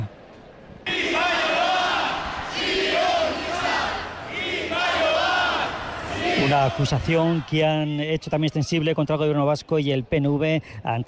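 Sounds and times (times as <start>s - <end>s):
protest crowd chanting slogans: 0.8s - 8.0s
speech: 6.5s - 11.0s.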